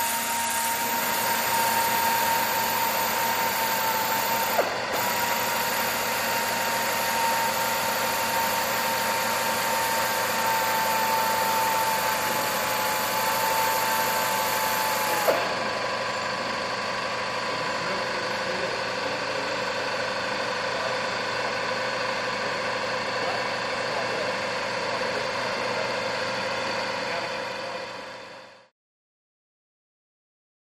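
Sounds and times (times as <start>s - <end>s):
aircraft hangar ambience: 0.0s - 28.6s.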